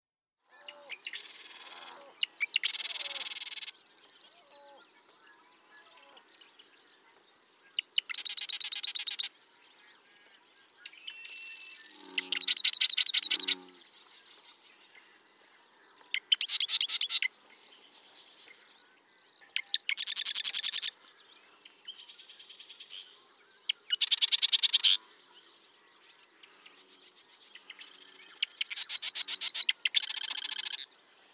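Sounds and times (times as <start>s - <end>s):
bird song of buzzy high trilled bursts and rattling phrases: 0.6s - 31.3s.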